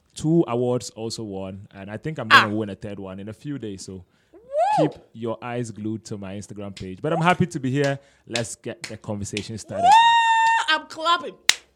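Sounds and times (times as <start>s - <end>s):
speech: 0.2s - 10.2s, 10.9s - 11.6s
hands clapping: 6.8s - 10.8s, 11.5s - 11.7s.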